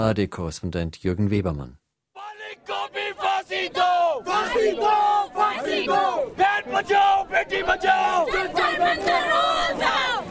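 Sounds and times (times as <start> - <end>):
speech: 0.0 - 1.8, 3.6 - 10.2
protesters chanting outside a juvenile court in New Delhi: 2.2 - 10.2.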